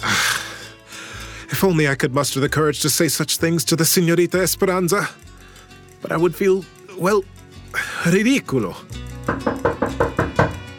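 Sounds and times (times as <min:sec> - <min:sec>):
speech: 0:01.5 - 0:05.3, 0:06.0 - 0:09.5
frightful knocking at the mansion's front door: 0:09.2 - 0:10.7.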